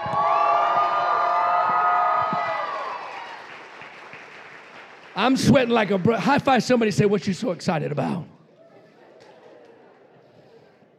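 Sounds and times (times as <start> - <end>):
audience shouting and clapping: 0.0 - 6.6
speech: 5.2 - 8.3.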